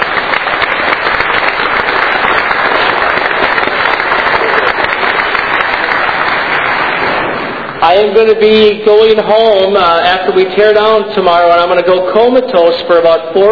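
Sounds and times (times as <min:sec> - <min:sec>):
audience applause: 0:00.0 - 0:07.8
speech: 0:07.9 - 0:13.4.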